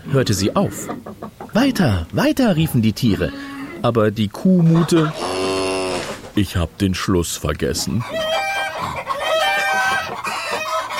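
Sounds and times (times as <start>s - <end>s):
chickens clucking and cackling: 0.0s - 6.4s, 7.7s - 10.9s
speech: 0.1s - 5.4s, 6.4s - 8.4s.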